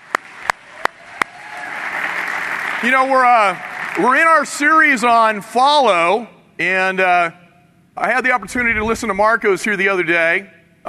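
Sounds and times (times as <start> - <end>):
round of applause, many hands clapping: 0.0 - 4.4
speech: 2.8 - 7.4, 8.0 - 10.8.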